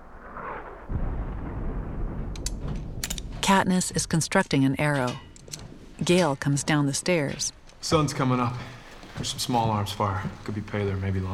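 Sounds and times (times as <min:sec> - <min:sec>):
mortar shell explosions: 0:00.0 - 0:04.4
speech: 0:03.5 - 0:05.3, 0:06.0 - 0:11.3.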